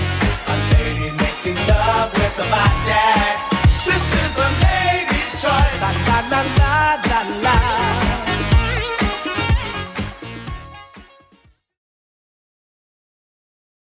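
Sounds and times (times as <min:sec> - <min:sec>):
clean 80s drum machine beat at 123 bpm: 0:00.0 - 0:10.7.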